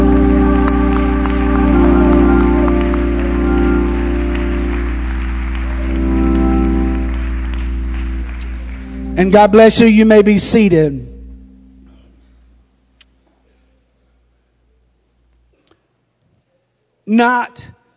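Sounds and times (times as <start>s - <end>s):
audience clapping hands: 0.0s - 10.3s
speech: 9.3s - 11.1s, 17.1s - 17.8s.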